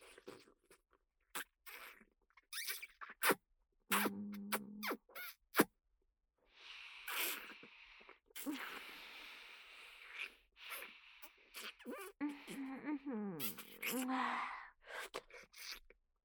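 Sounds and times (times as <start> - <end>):
ASMR oral sex sounds: 2.6 - 5.7, 8.4 - 9.2, 10.0 - 15.8.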